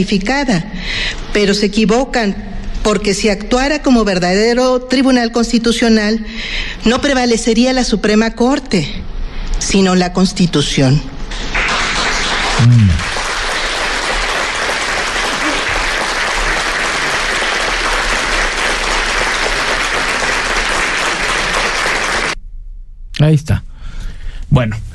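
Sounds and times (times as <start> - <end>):
speech: 0.0 - 11.6, 12.6 - 13.0, 23.2 - 23.7, 24.5 - 24.9
audience applause: 11.5 - 22.4.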